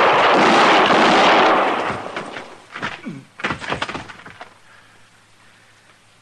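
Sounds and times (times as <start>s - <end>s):
gunfire in a Western-style radio drama shootout: 0.0s - 2.7s
sharp cracks and thuds: 0.0s - 4.6s.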